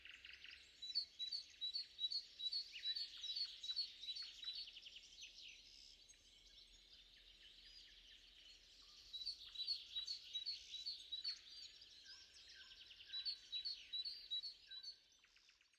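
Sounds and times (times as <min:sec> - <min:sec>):
bird song: 0:00.0 - 0:15.7.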